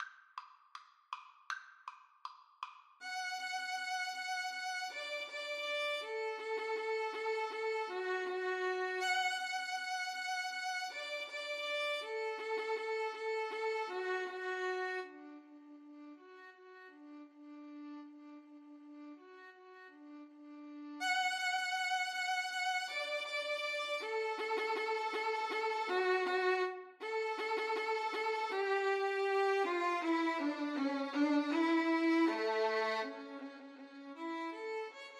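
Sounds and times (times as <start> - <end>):
violin duet playing a march: 3.0 - 15.1, 21.0 - 35.1.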